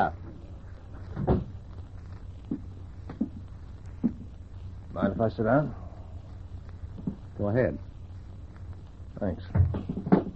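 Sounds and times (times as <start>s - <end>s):
speech: 0.0s - 0.2s, 5.0s - 5.8s, 7.4s - 7.9s, 9.2s - 10.1s
door being shut: 1.2s - 1.5s.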